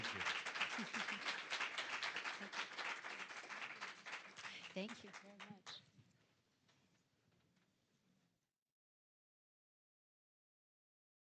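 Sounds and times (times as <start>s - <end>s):
laughter: 0.0s - 1.5s
audience applause: 0.0s - 5.8s
speech: 4.8s - 5.7s.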